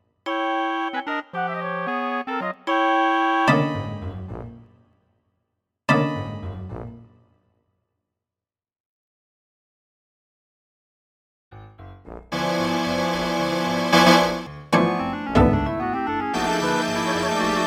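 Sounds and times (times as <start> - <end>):
dectet playing: 0.3 - 3.7, 12.4 - 17.6.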